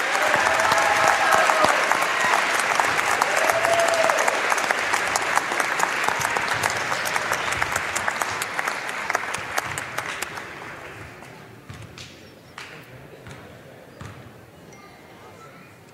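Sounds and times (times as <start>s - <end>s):
audience applause: 0.0s - 11.3s.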